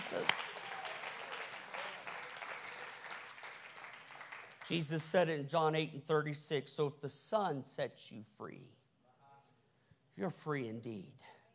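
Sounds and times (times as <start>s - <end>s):
audience clapping hands: 0.0s - 5.1s
speech: 0.1s - 0.5s, 4.7s - 8.8s, 10.2s - 11.4s.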